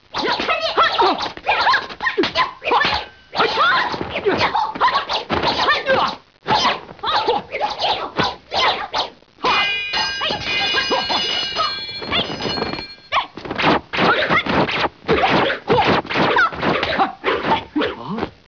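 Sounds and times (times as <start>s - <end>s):
fight sounds: 0.1s - 18.3s.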